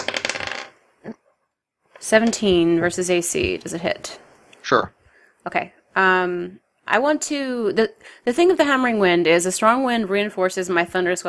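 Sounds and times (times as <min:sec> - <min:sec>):
dice rolled across a hard surface: 0:00.0 - 0:00.8
speech: 0:02.1 - 0:11.2.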